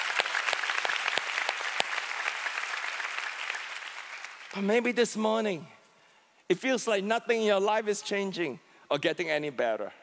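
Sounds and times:
church audience clapping: 0.0 - 4.8
speech: 4.5 - 5.8, 6.5 - 10.0.

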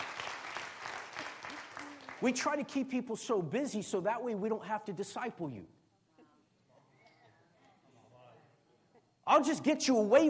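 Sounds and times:
audience clapping: 0.0 - 2.8
speech: 2.2 - 5.8, 9.4 - 10.2.

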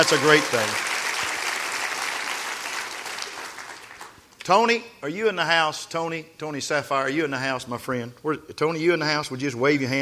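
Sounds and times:
speech: 0.0 - 0.9, 4.5 - 9.9
audience clapping hands: 0.0 - 4.4.

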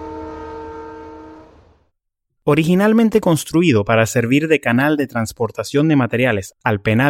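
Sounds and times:
steam locomotive whistle: 0.0 - 1.8
speech: 2.5 - 7.0.

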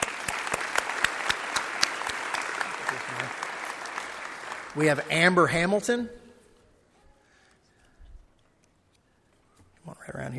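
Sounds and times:
crowd round of applause: 0.0 - 5.7
speech: 4.8 - 6.2.

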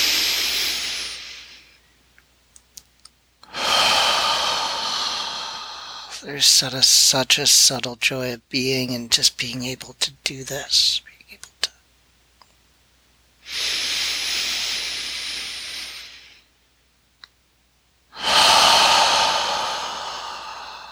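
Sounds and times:
slow deep breathing during a guided meditation: 0.0 - 1.8, 3.4 - 6.2, 13.5 - 16.5, 18.2 - 20.9
speech: 6.2 - 11.1, 13.5 - 13.8.

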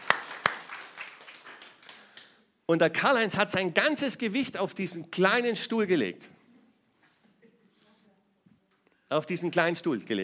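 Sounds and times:
audience applause: 0.0 - 2.3
speech: 2.7 - 6.4, 9.1 - 10.2.

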